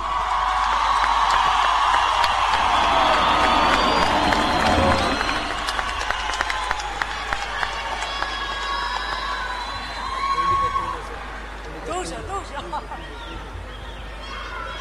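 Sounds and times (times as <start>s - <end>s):
audience applause: 0.0s - 12.6s.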